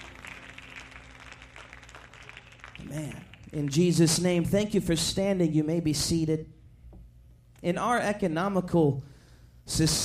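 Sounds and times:
audience clapping hands: 0:00.0 - 0:04.8
speech: 0:02.9 - 0:06.6, 0:07.6 - 0:09.1, 0:09.7 - 0:10.0.

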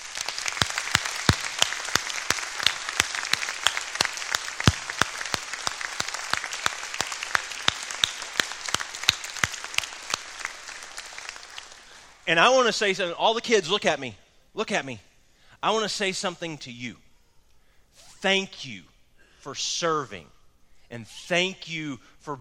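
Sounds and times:
crowd clapping: 0:00.0 - 0:12.8
speech: 0:12.3 - 0:17.0, 0:18.2 - 0:22.3.

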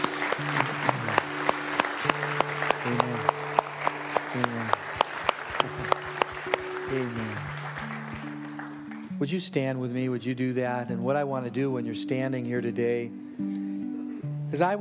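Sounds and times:
audience applauding: 0:00.0 - 0:09.2
sustained organ-like tones: 0:00.0 - 0:09.4
speech: 0:09.2 - 0:13.6, 0:14.5 - 0:14.8.

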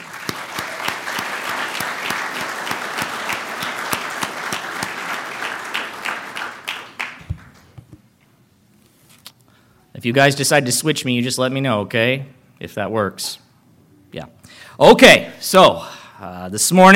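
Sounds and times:
audience round of applause: 0:00.0 - 0:07.7
speech: 0:10.0 - 0:13.4, 0:14.1 - 0:16.9.

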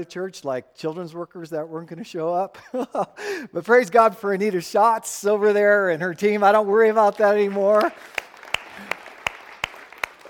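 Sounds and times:
speech: 0:00.0 - 0:08.2
rhythmic audience clapping: 0:07.0 - 0:10.2.

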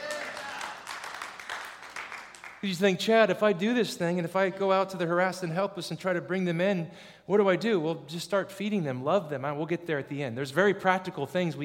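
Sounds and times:
scattered clapping from audience: 0:00.0 - 0:02.6
speech: 0:02.6 - 0:11.6.

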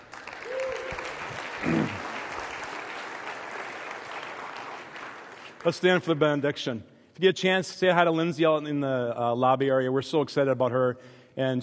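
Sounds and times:
church audience applauding to welcome a new staff member: 0:00.0 - 0:06.1
speech: 0:05.6 - 0:11.6.

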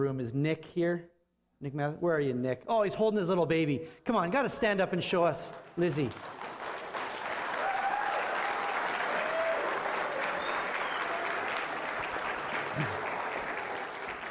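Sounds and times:
speech: 0:00.0 - 0:06.5
audience clapping: 0:05.5 - 0:14.2.

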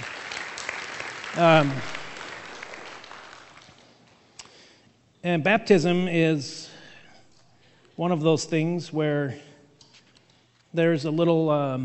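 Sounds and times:
audience applauding: 0:00.0 - 0:04.0
speech: 0:01.4 - 0:02.0, 0:05.2 - 0:06.7, 0:08.0 - 0:09.5, 0:10.8 - 0:11.8.

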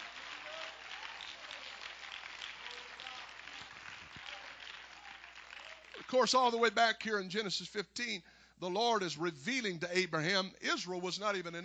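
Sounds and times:
audience clapping hands: 0:00.0 - 0:07.2
speech: 0:06.1 - 0:11.6.

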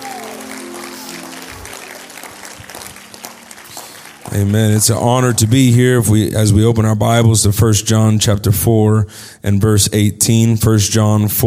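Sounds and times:
audience clapping hands: 0:00.0 - 0:06.0
speech: 0:04.3 - 0:11.4.

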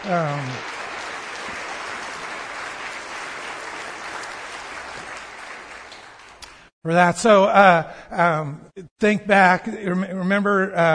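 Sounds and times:
speech: 0:00.0 - 0:00.8, 0:06.8 - 0:10.9
audience applause at a church service for a graduate: 0:00.0 - 0:06.7.

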